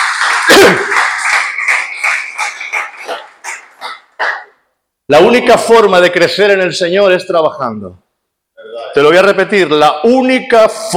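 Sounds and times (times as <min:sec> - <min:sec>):
crowd clapping: 0:00.0 - 0:04.6
speech: 0:05.1 - 0:08.0, 0:09.0 - 0:10.9.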